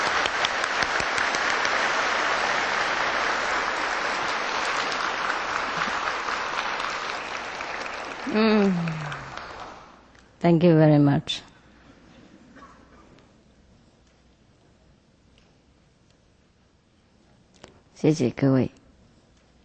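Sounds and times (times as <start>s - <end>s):
audience applause: 0.0s - 10.0s
speech: 10.4s - 11.5s, 18.0s - 18.8s.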